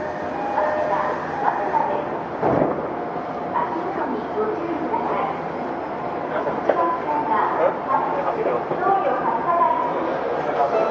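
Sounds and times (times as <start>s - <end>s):
Tokyo Metro 05 series train interior roar: 0.0s - 10.9s.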